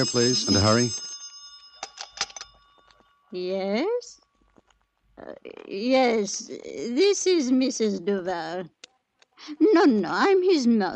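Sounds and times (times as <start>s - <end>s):
speech: 0.0s - 1.0s, 3.3s - 4.1s, 5.2s - 8.8s, 9.4s - 10.9s
telephone ringing: 0.0s - 3.0s.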